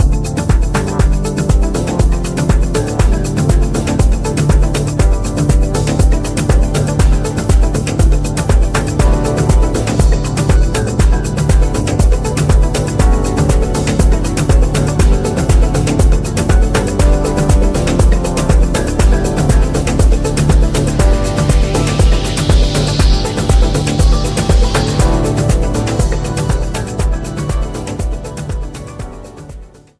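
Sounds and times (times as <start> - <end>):
instrumental music: 0.0 - 29.9.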